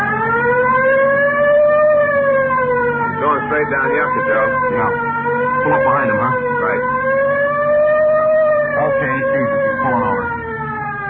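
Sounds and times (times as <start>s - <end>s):
low engine rumble: 0.0s - 11.0s
police car siren wailing: 0.0s - 11.0s
speech: 3.6s - 6.9s.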